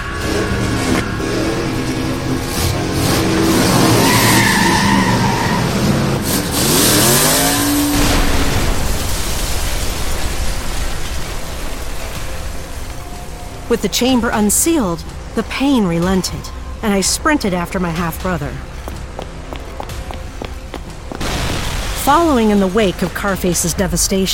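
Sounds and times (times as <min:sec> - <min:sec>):
hot rod car skidding: 0:00.1 - 0:08.6
hot rod car smashing through doors: 0:03.5 - 0:12.9
speech: 0:13.7 - 0:18.7, 0:22.1 - 0:24.3.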